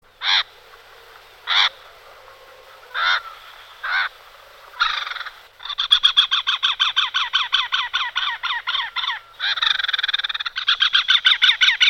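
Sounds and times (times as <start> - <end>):
background hiss: 0.0 - 11.8
great spotted cuckoo rasping calls: 0.1 - 11.8.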